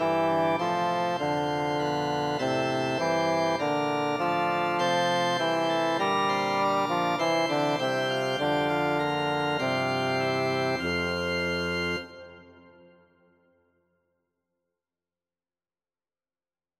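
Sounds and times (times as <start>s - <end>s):
bass: 0.0s - 12.5s.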